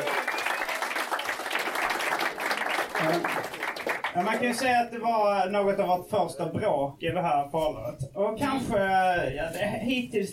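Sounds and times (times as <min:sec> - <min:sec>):
audience applause: 0:00.0 - 0:04.7
speech: 0:03.0 - 0:03.6, 0:04.2 - 0:10.3.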